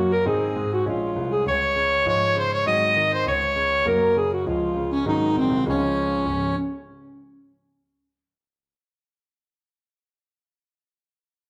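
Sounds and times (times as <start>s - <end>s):
alto saxophone playing polska: 0.0s - 7.2s.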